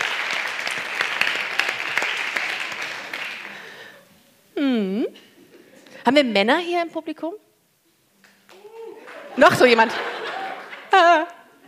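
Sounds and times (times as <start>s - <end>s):
audience applause: 0.0s - 3.9s, 8.5s - 11.0s
speech: 6.1s - 7.5s, 9.4s - 10.2s, 11.0s - 11.3s
laughter: 8.9s - 11.6s.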